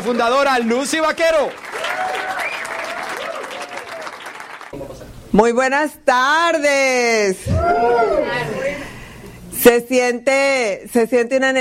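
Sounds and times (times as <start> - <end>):
speech: 0.0 - 2.1, 4.7 - 8.7, 9.6 - 11.5
crowd applauding: 0.0 - 4.8
whoops and cheers: 1.7 - 4.3, 7.4 - 8.5.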